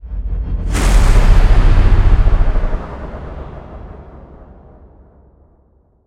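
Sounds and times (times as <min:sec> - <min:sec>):
modulated stinger: 0:00.5 - 0:05.0.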